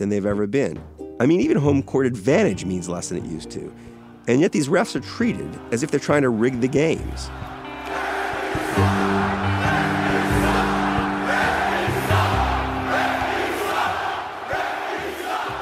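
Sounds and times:
speech: 0.0 - 7.6
huge arena crowd roaring and screaming: 5.3 - 15.5.

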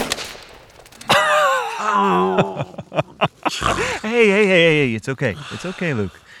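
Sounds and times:
rifle shot: 0.0 - 1.3
laughter: 1.0 - 6.1
speech: 1.9 - 6.3.

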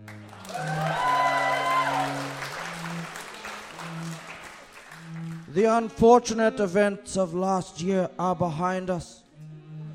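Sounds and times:
audience applause: 0.0 - 5.5
speech: 5.6 - 9.2.

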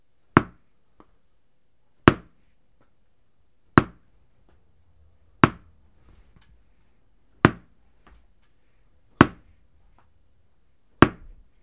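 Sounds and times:
ball bouncing on the floor: 0.4 - 1.1, 2.1 - 2.9, 3.8 - 4.6, 5.4 - 6.2, 7.4 - 8.2, 9.2 - 10.1, 11.0 - 11.4.

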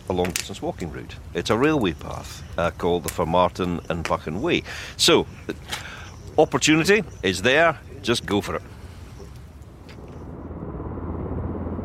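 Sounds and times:
speech: 0.1 - 8.7
helicopters at Aberdeen Airport: 5.4 - 11.8.

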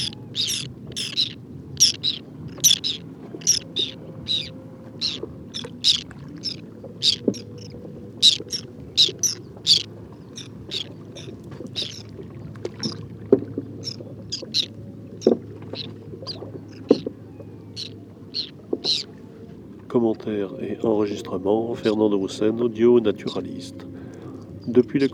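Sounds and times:
whiskered tern contact calls: 0.0 - 12.1, 13.8 - 19.1
low steady hum: 0.0 - 25.1.

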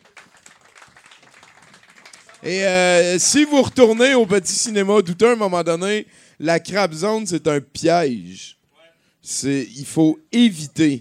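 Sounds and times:
audience applause: 0.0 - 4.5
speech: 2.4 - 8.6, 9.2 - 10.9.

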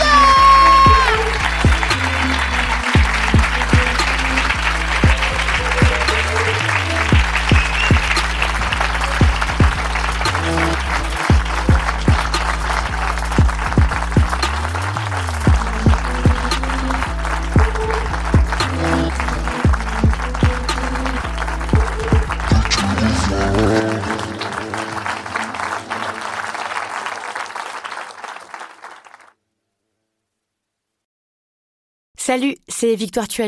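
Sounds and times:
low droning tone: 0.0 - 23.6
audience applauding: 0.0 - 29.4
speech: 32.4 - 33.4.

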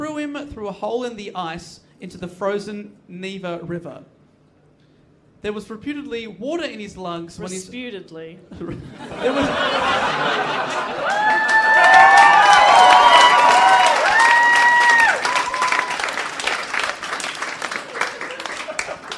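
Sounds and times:
speech: 0.6 - 4.2, 5.4 - 13.0
laughter: 8.6 - 11.5, 17.9 - 19.1
audience applause, standing ovation: 10.1 - 19.1.

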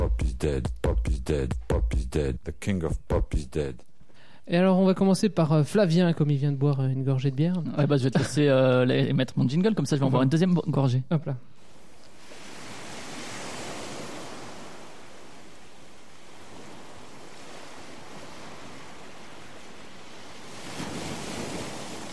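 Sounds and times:
speech: 0.4 - 3.9, 4.5 - 11.5
ocean waves on a beach: 11.6 - 22.1.

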